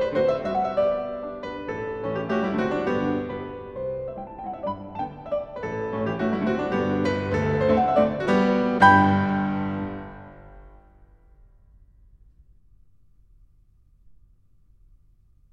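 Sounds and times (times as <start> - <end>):
piano mazurka: 0.0 - 11.0.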